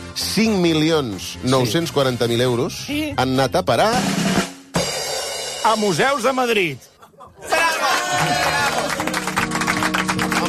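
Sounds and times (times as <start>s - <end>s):
speech: 0.2s - 4.3s, 5.6s - 6.9s
laughter: 6.9s - 9.3s
crowd applauding: 7.5s - 10.4s.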